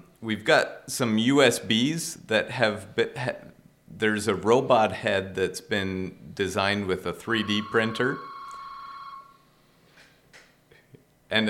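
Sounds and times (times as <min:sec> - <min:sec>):
quiet hiss: 0:00.0 - 0:11.4
speech: 0:00.2 - 0:08.3
telephone ringing with electronic trill: 0:07.4 - 0:09.4.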